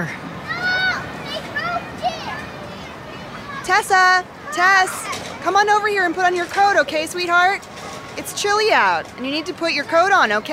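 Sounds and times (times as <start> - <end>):
children laughing and screaming at play: 0.0 - 5.5
speech: 3.7 - 10.5.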